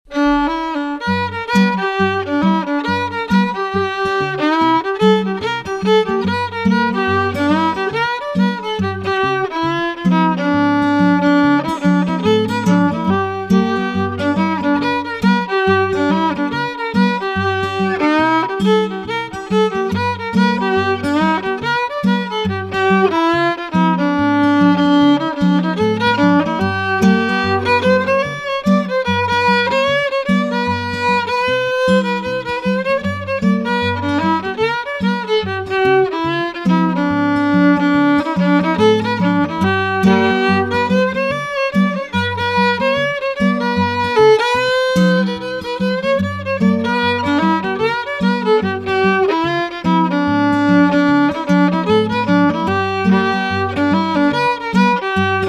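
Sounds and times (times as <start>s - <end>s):
blues music field recording from Mississippi: 0.0s - 55.4s.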